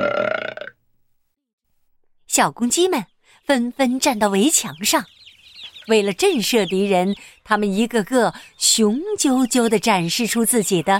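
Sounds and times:
burp: 0:00.0 - 0:00.8
speech: 0:02.4 - 0:05.2, 0:05.9 - 0:10.9.

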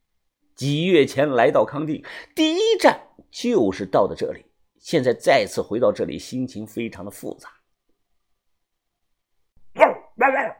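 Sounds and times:
speech: 0:00.6 - 0:07.6
village dog barking: 0:09.7 - 0:10.5.

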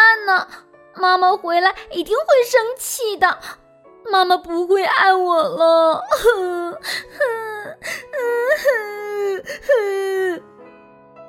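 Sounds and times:
speech: 0:00.4 - 0:10.5
performer imitating a child crying on the floor: 0:04.8 - 0:10.4.

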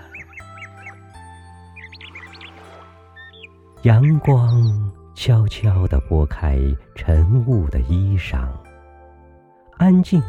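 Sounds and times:
clear bird call: 0:00.0 - 0:04.9
speech: 0:03.8 - 0:08.6, 0:09.8 - 0:10.2.

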